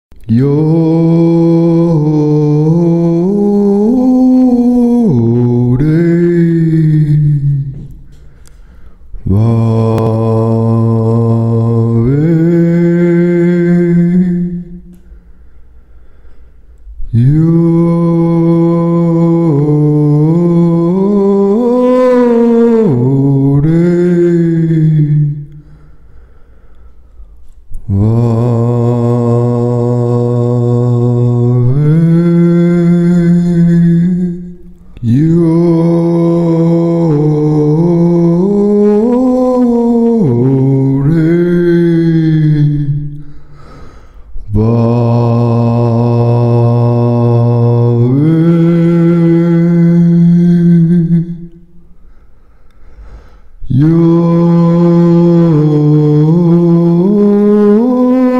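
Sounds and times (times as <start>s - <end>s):
sacred chant: 0.1s - 58.3s.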